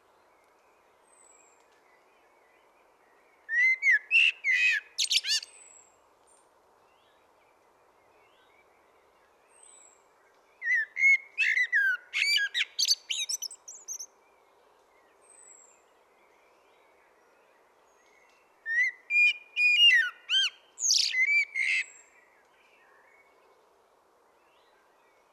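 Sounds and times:
common blackbird Turdus merula singing: 3.5s - 5.7s, 10.6s - 14.1s, 18.0s - 23.3s.

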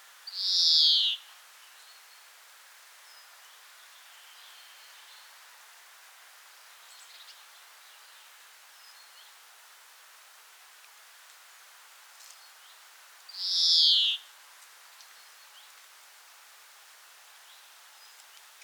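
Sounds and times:
European greenfinch Chloris chloris call: 0.4s - 1.2s, 13.4s - 14.2s.

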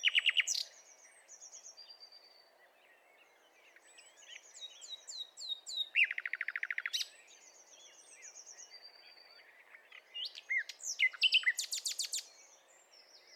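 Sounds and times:
Common nightingale Luscinia megarhynchos song: 0.0s - 13.3s.

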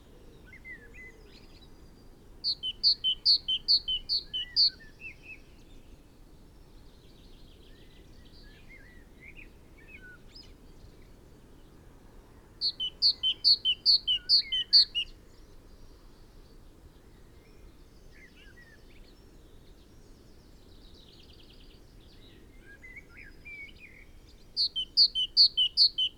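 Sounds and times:
great tit singing two-note phrases: 2.5s - 4.8s, 12.6s - 15.1s, 24.6s - 26.1s.

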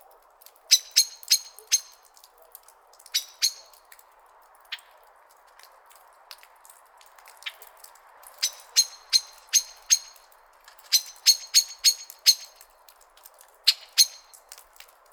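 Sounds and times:
common blackbird chink calls: 0.7s - 2.1s, 3.1s - 3.8s, 8.3s - 10.2s, 10.9s - 12.7s, 13.7s - 14.4s.

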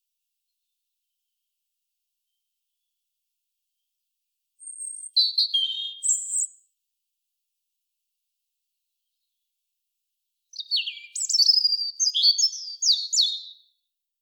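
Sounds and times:
European robin singing Erithacus rubecula: 4.6s - 6.7s, 10.5s - 13.7s.

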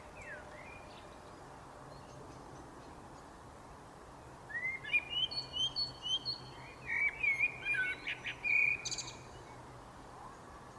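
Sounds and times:
common blackbird singing: 0.0s - 1.3s, 4.5s - 9.6s.

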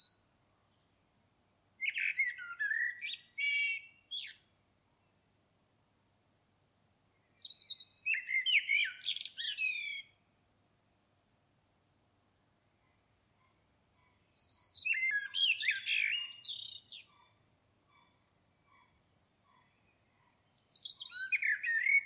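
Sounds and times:
common blackbird song: 1.8s - 4.6s, 6.5s - 10.2s, 13.3s - 22.0s.

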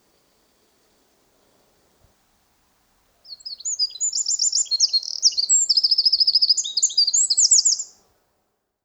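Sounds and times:
Eurasian wren song: 3.3s - 8.0s.

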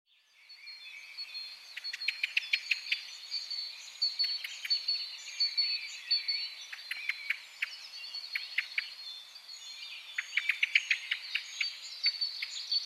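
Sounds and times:
common blackbird Turdus merula sharp clicking calls: 1.8s - 3.0s, 4.2s - 4.9s, 5.5s - 8.9s, 10.2s - 12.8s.

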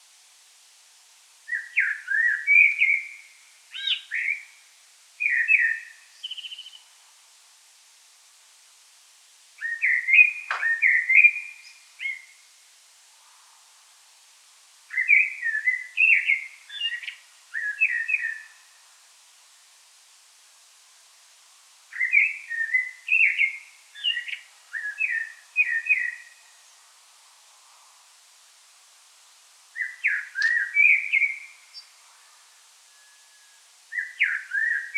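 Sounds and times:
Common blackbird singing: 1.5s - 4.6s, 5.2s - 6.8s, 9.6s - 12.4s, 14.9s - 18.7s, 21.9s - 26.5s, 29.8s - 32.0s, 32.9s - 34.9s.

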